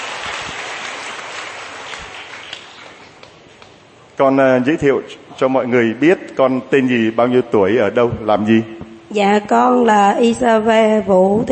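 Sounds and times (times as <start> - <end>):
audience applause: 0.0 - 3.2
speech: 4.2 - 11.5.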